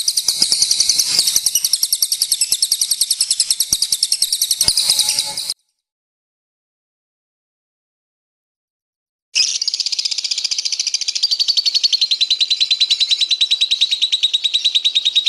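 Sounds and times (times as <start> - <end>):
lovebird chirp: 0.0 - 5.6, 9.4 - 15.2.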